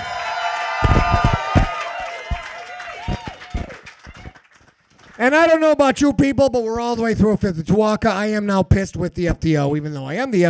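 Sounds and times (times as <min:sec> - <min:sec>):
cheering and whoops: 0:00.0 - 0:04.4
crowd applause: 0:00.0 - 0:05.6
whistles: 0:00.8 - 0:04.4
speech: 0:05.2 - 0:10.4.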